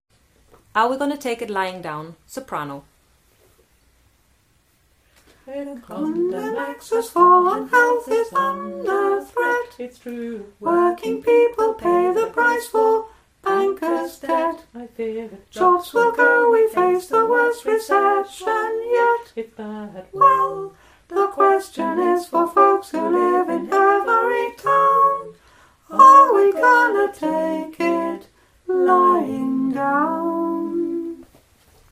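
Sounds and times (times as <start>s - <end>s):
soprano singing: 5.5s - 31.3s.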